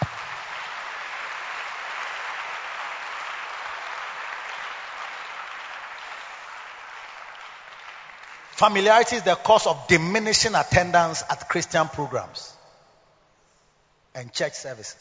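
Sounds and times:
audience clapping: 0:00.0 - 0:09.7
speech: 0:08.6 - 0:12.6, 0:14.2 - 0:14.9.

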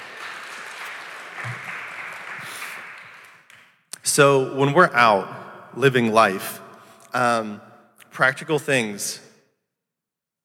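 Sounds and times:
round of applause: 0:00.0 - 0:03.7
speech: 0:04.2 - 0:09.2.

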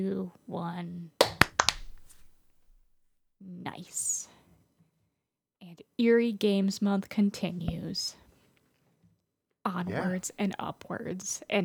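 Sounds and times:
speech: 0:00.0 - 0:01.2, 0:03.4 - 0:04.3, 0:05.7 - 0:08.2, 0:09.6 - 0:11.6
hand clap for audio sync: 0:01.2 - 0:02.3.

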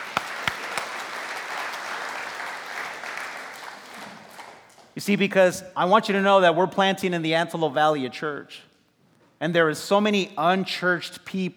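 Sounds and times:
audience applause: 0:00.0 - 0:04.8
speech: 0:05.0 - 0:08.7, 0:09.4 - 0:11.5.

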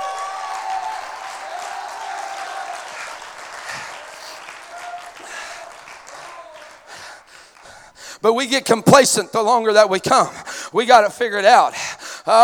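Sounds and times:
audience applause: 0:00.0 - 0:07.9
speech: 0:08.2 - 0:12.4.

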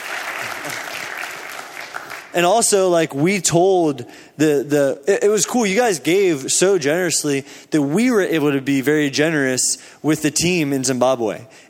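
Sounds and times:
audience clapping and cheering: 0:00.0 - 0:02.6
speech: 0:02.3 - 0:11.6.

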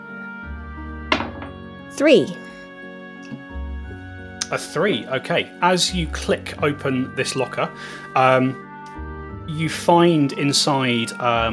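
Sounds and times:
fancy six-sided die rolled for a tabletop game: 0:01.1 - 0:01.6
speech: 0:01.9 - 0:02.5, 0:04.5 - 0:08.6, 0:09.5 - 0:11.5.

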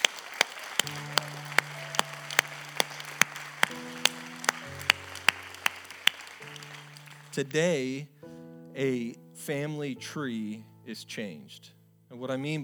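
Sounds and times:
audience clapping: 0:00.0 - 0:07.6
speech: 0:07.4 - 0:08.1, 0:08.8 - 0:12.6.

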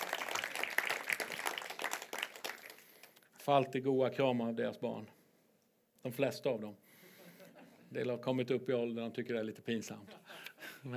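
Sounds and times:
audience applause: 0:00.0 - 0:03.1
speech: 0:03.4 - 0:05.2, 0:06.0 - 0:06.8, 0:07.9 - 0:10.2.

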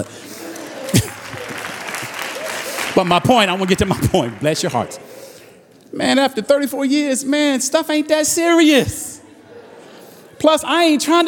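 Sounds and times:
speech: 0:00.0 - 0:00.2, 0:03.0 - 0:05.1, 0:05.9 - 0:09.1, 0:10.4 - 0:11.2
laughter: 0:00.0 - 0:05.1, 0:09.2 - 0:11.2
stand-up comedy show audience applause: 0:00.0 - 0:05.5.

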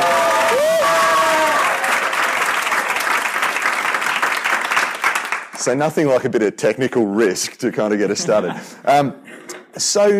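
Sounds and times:
audience applause: 0:00.0 - 0:05.6
speech: 0:05.6 - 0:10.1.

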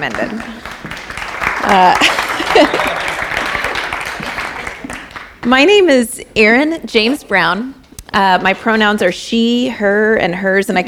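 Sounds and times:
speech: 0:00.0 - 0:00.8, 0:01.6 - 0:02.9, 0:05.4 - 0:10.8
crowd applauding: 0:00.0 - 0:05.5
laughter: 0:01.7 - 0:04.3.

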